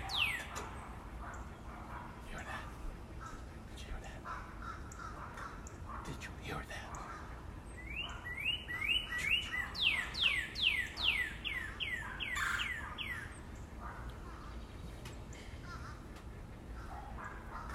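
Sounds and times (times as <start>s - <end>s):
red cardinal singing in a backyard: 0.0s - 0.5s, 7.8s - 13.3s
low steady rumble and murmur: 0.0s - 7.9s, 13.2s - 17.7s.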